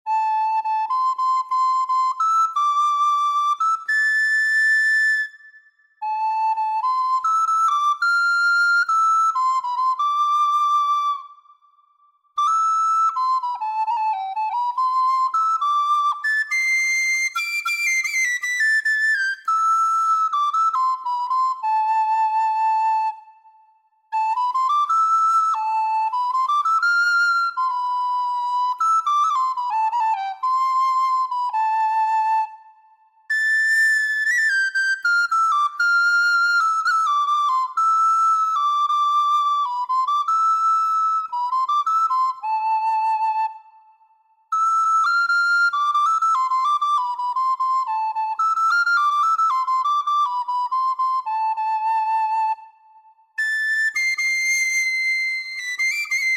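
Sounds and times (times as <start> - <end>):
flute: 0.0 - 56.3.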